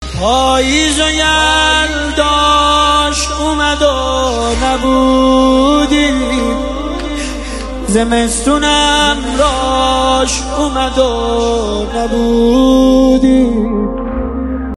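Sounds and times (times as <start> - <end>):
mourning chant, nohe: 0.0 - 14.7.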